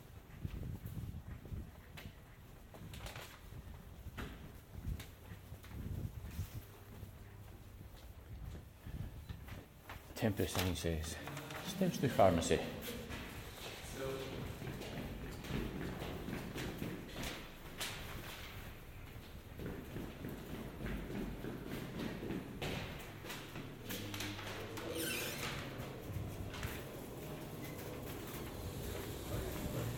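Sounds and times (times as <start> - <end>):
scattered footsteps of people walking about: 0.2 - 29.9
speech: 10.2 - 12.8
men shoving trolleys and bins on a street: 25.7 - 29.9.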